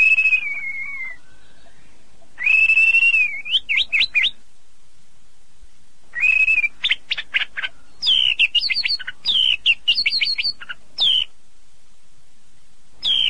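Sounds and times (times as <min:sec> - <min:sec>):
birds whistling and chirping: 0:00.0 - 0:04.4, 0:06.1 - 0:11.3, 0:13.0 - 0:13.2.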